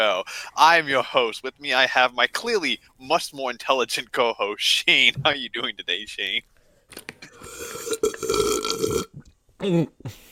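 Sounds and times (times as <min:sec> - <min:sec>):
speech: 0:00.0 - 0:07.1, 0:09.6 - 0:10.2
mouth clicks and gulps: 0:07.2 - 0:09.4
loud rumbling burp after drinking too much water: 0:07.7 - 0:09.2.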